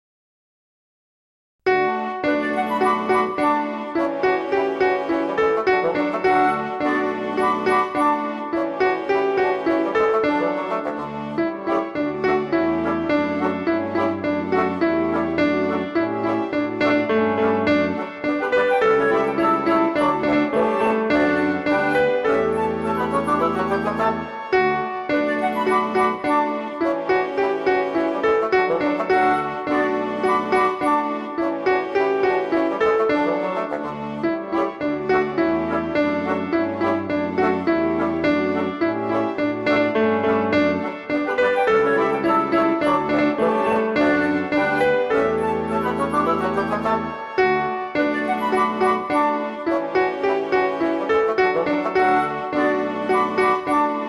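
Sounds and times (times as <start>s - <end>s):
instrumental music: 1.7s - 54.0s.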